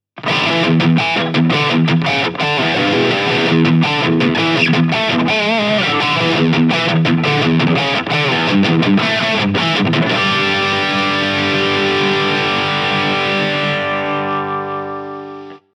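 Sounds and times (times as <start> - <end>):
lead guitar through Engl R606 Ironball Head 20 SE: 0.1 - 15.7.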